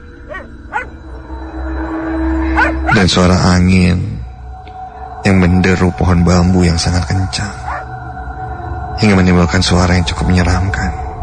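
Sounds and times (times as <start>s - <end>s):
neighbour's dog barking continuously: 0.3s - 1.0s, 2.5s - 3.0s, 7.7s - 7.9s
speech: 3.0s - 4.1s, 5.2s - 7.6s, 9.0s - 11.0s.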